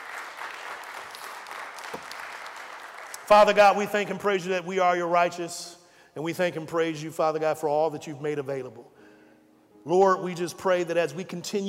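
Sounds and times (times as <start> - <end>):
audience hand clapping: 0.0 - 3.8
speech: 3.3 - 8.9, 9.8 - 11.6.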